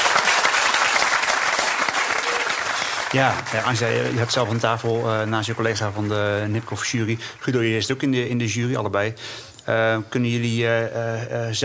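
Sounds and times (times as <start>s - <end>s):
audience applause: 0.0s - 8.5s
speech: 3.1s - 11.6s.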